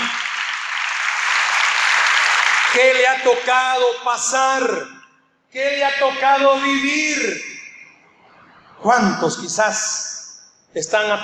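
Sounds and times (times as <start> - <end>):
loud audience applause: 0.0 - 3.2
speech: 2.8 - 7.6, 8.8 - 10.1, 10.7 - 11.2.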